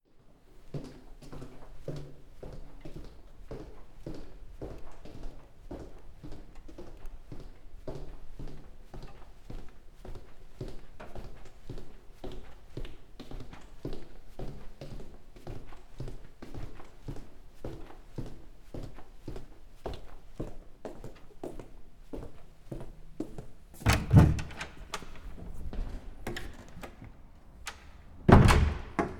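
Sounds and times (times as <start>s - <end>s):
footsteps in corridor: 0.2s - 29.1s
door pushed open and closed: 23.8s - 29.1s.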